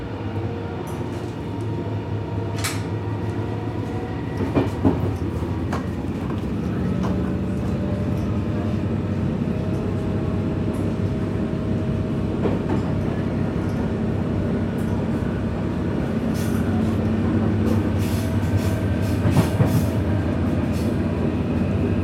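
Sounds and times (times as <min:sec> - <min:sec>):
train rumbling and rattling on tracks: 0:00.0 - 0:22.0
rail clicks and knocks: 0:02.5 - 0:03.4, 0:04.3 - 0:08.7, 0:12.4 - 0:13.9, 0:16.3 - 0:20.0.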